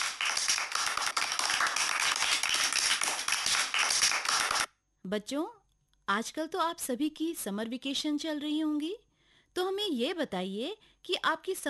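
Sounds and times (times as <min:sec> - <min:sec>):
children applauding after a performance: 0:00.0 - 0:04.7
speech: 0:05.1 - 0:11.6.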